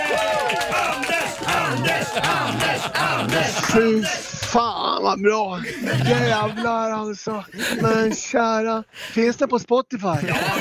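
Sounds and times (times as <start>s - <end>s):
small audience applause for Anders: 0.0s - 4.6s
laughter: 0.1s - 8.4s, 10.1s - 10.5s
speech: 1.7s - 10.5s.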